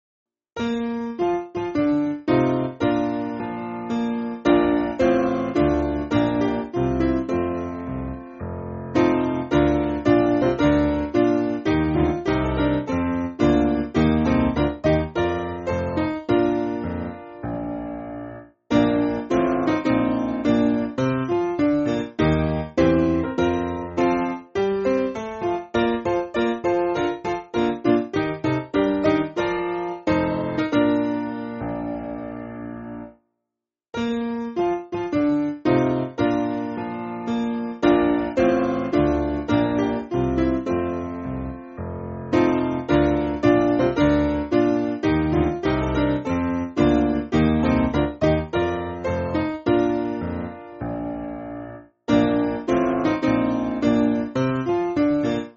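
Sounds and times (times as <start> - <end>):
church piano music: 0.6 - 33.2, 34.0 - 55.5.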